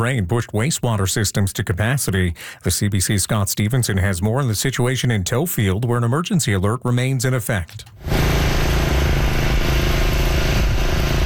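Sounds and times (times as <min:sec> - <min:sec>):
speech: 0:00.0 - 0:08.5
heavy water pumps running at full power: 0:07.7 - 0:11.2.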